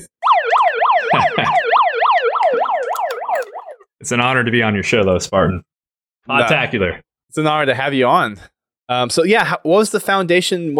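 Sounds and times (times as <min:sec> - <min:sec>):
megaphone siren alarm: 0:00.2 - 0:03.9
speech: 0:01.4 - 0:01.6, 0:04.0 - 0:10.7.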